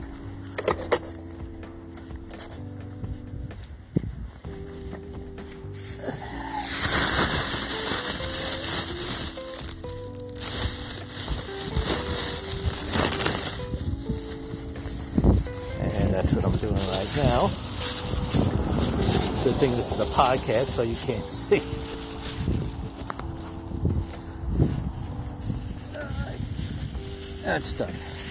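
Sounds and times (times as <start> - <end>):
light outdoor noise: 0.0 - 28.2
plastic bag crinkling: 6.1 - 28.2
speech: 19.9 - 21.9, 27.5 - 28.1.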